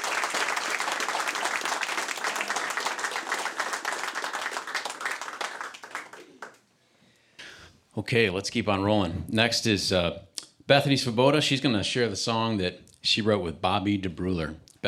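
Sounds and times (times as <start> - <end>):
audience applause: 0.0 - 6.6
speech: 8.0 - 14.8.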